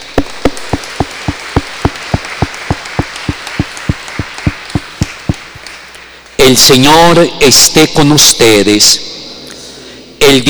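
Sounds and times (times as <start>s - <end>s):
applause: 0.1s - 6.4s
speech: 6.5s - 9.1s, 10.2s - 10.4s.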